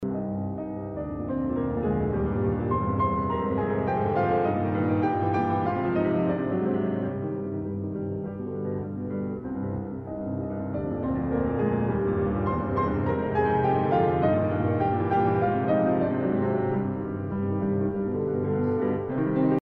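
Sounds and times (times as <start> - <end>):
piano sonata in F minor fourth movement prestissimo: 0.0 - 19.5.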